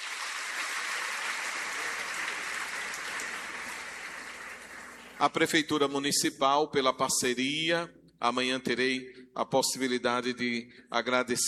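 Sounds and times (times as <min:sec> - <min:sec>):
audience applause: 0:00.0 - 0:05.2
speech: 0:05.2 - 0:11.4.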